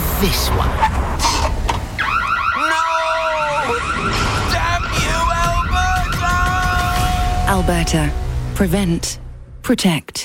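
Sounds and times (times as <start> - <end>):
speech: 0.2 - 1.0, 7.5 - 10.2
home security alarm going off: 2.0 - 6.8.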